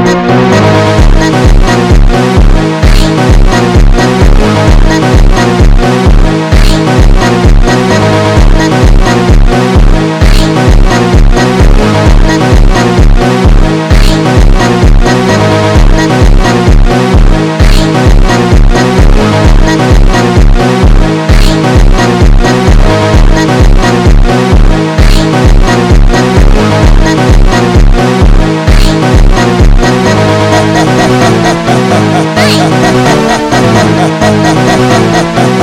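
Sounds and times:
automotivo beat: 0:00.1 - 0:35.6.

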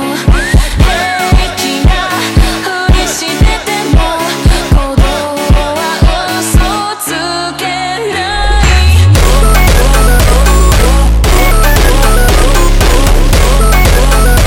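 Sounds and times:
slowed hardstyle music: 0:00.1 - 0:06.9, 0:08.2 - 0:14.4.

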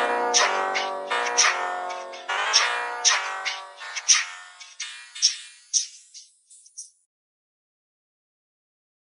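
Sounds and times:
slowed phonk music: 0:00.0 - 0:06.2.

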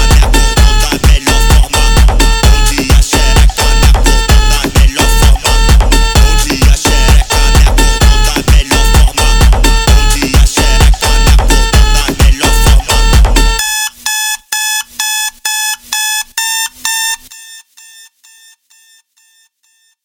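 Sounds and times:
alarm funk music: 0:00.0 - 0:13.6.

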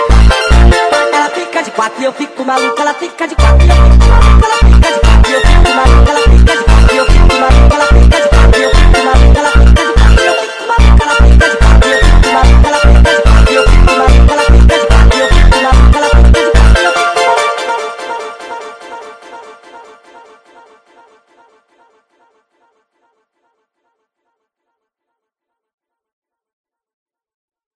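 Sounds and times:
sped up montagem music: 0:00.0 - 0:22.0.

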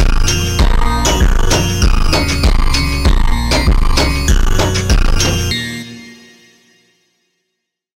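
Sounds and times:
super slowed funk music: 0:00.0 - 0:05.7.

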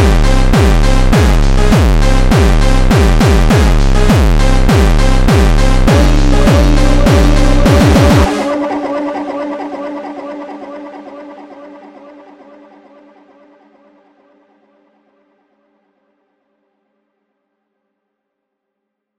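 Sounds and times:
ultra slowed jumpstyle music: 0:00.0 - 0:09.6.

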